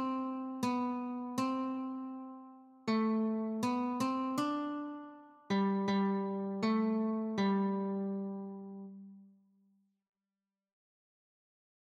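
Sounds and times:
guitar notes: 0.0 - 9.2.

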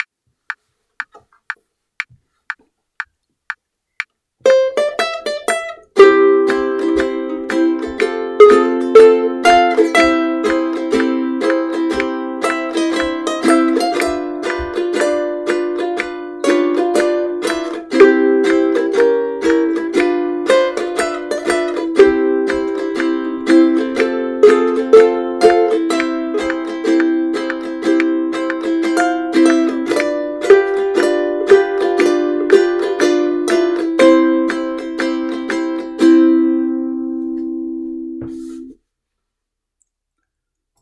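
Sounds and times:
strummed chords: 4.4 - 38.7.

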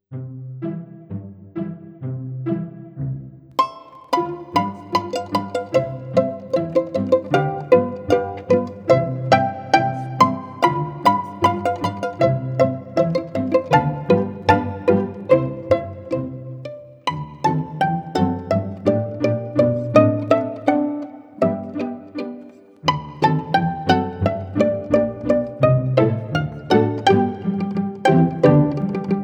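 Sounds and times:
pizzicato polka: 0.0 - 29.2.

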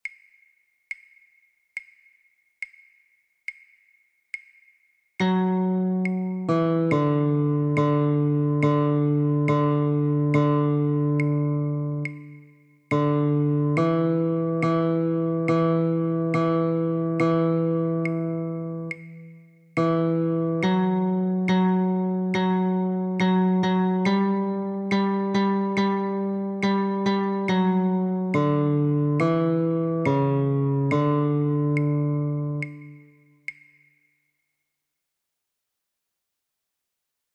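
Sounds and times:
guitar notes: 5.2 - 33.2.

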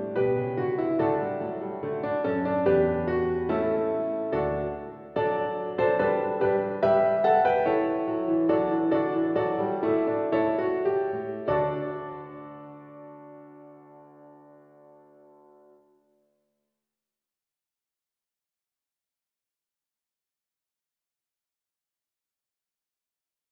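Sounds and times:
SATB choir accompaniment track: 0.0 - 13.3.

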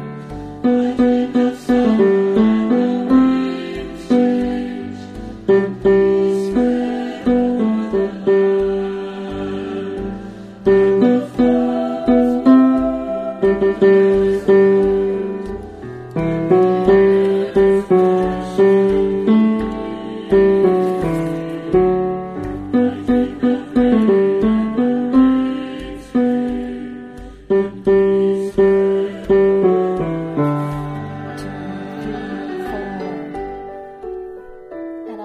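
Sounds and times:
tenor singing: 0.0 - 34.2.

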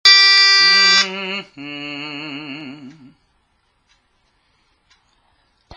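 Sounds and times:
lead melody: 0.0 - 1.1.

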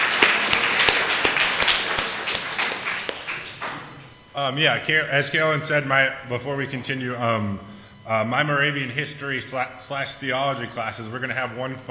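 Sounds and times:
audience applause: 0.0 - 4.0
speech: 4.4 - 11.8.

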